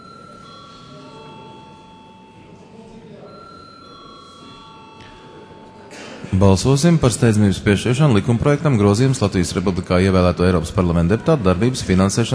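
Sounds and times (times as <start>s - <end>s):
parliament session bell ringing: 0.0s - 8.0s
low murmur of voices in the chamber: 0.0s - 12.3s
speech: 6.3s - 12.3s.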